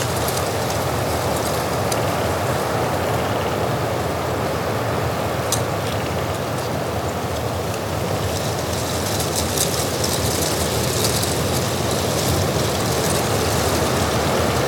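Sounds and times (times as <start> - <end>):
bright crackles and ticks: 0.0 - 2.4, 5.5 - 14.6
wind roaring over the Hochgern in rough weather: 0.0 - 14.6.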